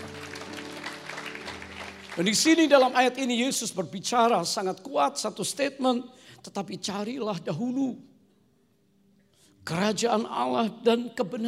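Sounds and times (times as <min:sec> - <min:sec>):
audience applause: 0:00.0 - 0:03.2
speech: 0:02.2 - 0:08.1, 0:09.6 - 0:11.4.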